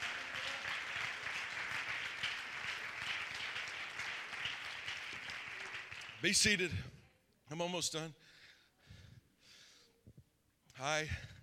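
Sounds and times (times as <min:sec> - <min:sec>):
audience clapping hands: 0:00.0 - 0:06.6
speech: 0:06.2 - 0:08.3, 0:10.8 - 0:11.3.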